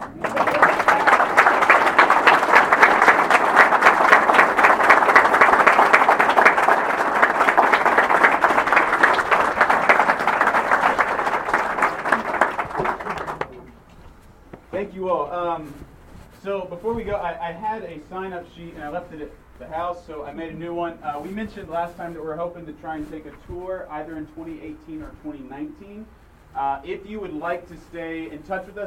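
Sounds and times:
audience applause: 0.0 - 13.7
speech: 16.6 - 28.8.

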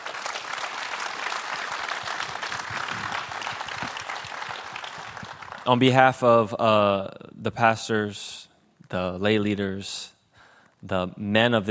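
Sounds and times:
audience clapping: 0.0 - 6.0
speech: 5.7 - 10.2, 10.8 - 11.6.

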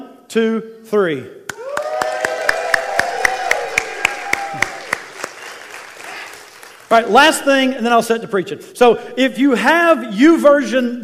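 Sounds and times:
speech: 0.3 - 1.4, 6.9 - 11.0
audience cheering and clapping: 1.5 - 7.1.

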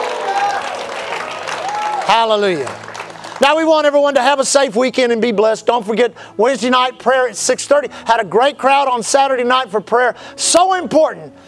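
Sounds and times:
audience shouting: 0.0 - 2.1
audience clapping: 0.0 - 4.0
speech: 2.1 - 2.8, 3.4 - 11.4.

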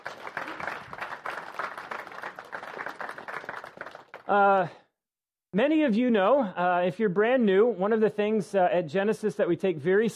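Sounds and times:
audience applause: 0.0 - 4.4
speech: 4.3 - 4.8, 5.5 - 10.1.

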